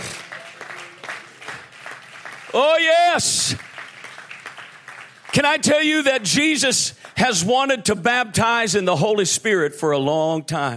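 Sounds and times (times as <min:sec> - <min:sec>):
church congregation clapping hands during a service: 0:00.0 - 0:08.1
speech: 0:02.5 - 0:03.7, 0:05.4 - 0:10.7.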